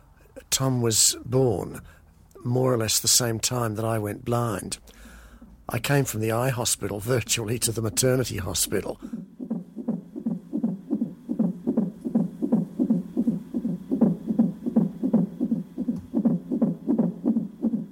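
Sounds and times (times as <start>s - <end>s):
speech: 0.6s - 5.1s, 5.7s - 9.3s
fetal heartbeat on a heart monitor: 9.0s - 17.9s.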